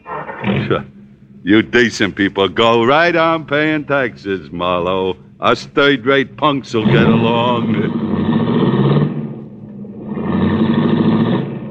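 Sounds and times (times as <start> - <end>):
speech: 0.7 - 8.1
convertible car engine pulling away into traffic: 6.8 - 11.6.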